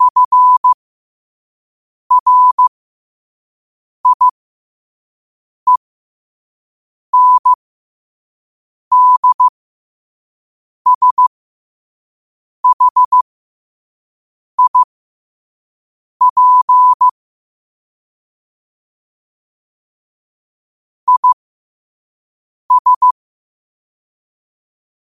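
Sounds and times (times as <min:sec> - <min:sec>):
morse code at 5 wpm: 0:00.0 - 0:00.8, 0:02.1 - 0:02.7, 0:04.0 - 0:04.3, 0:07.2 - 0:07.6, 0:08.9 - 0:09.5, 0:10.9 - 0:11.2, 0:12.6 - 0:13.2, 0:14.6 - 0:14.9, 0:16.2 - 0:17.1, 0:21.1 - 0:21.4, 0:22.7 - 0:23.2.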